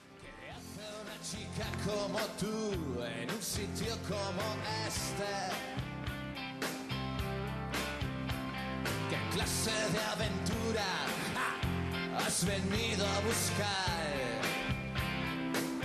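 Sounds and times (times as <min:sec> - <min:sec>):
Spanish-language rock song on the radio with vocals, guitar, bass and drums: 0:00.0 - 0:15.8
speech: 0:01.2 - 0:05.8, 0:09.4 - 0:11.6, 0:12.2 - 0:14.5.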